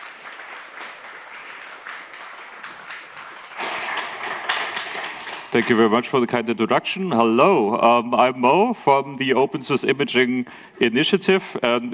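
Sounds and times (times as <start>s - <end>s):
audience applause: 0.0s - 6.1s
speech: 5.5s - 11.9s.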